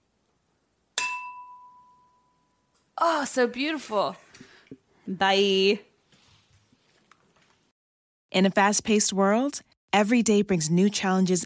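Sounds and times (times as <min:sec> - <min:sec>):
box cutter clinking against wine glass: 0:01.0 - 0:02.3
speech: 0:03.0 - 0:04.2, 0:05.1 - 0:05.9, 0:08.3 - 0:11.4.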